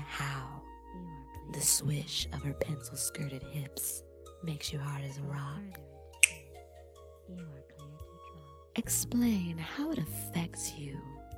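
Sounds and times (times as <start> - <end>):
speech: 1.6 - 5.9, 7.3 - 7.7, 8.8 - 11.2
finger snap: 5.7 - 6.6
soft voice speaking quietly: 7.3 - 8.5.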